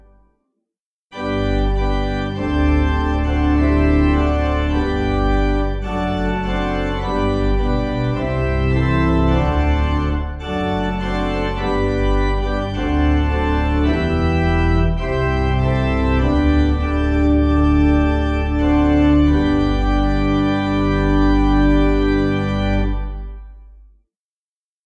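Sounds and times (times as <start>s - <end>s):
organ playing a hymn: 1.1s - 23.7s.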